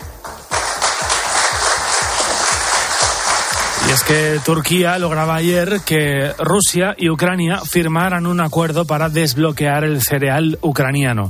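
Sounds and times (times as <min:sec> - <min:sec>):
applause: 0:00.2 - 0:06.2
speech: 0:04.0 - 0:11.2.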